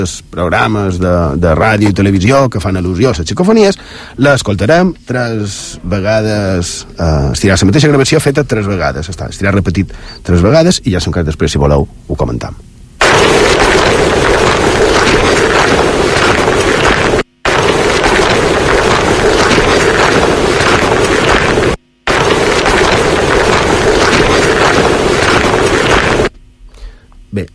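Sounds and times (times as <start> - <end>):
speech: 0.0 - 12.8, 27.4 - 27.5
footsteps on gravel: 13.1 - 26.3.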